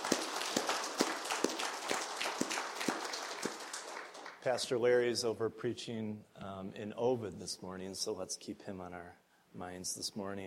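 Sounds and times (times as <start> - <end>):
audience applause: 0.0 - 4.4
speech: 4.4 - 10.4.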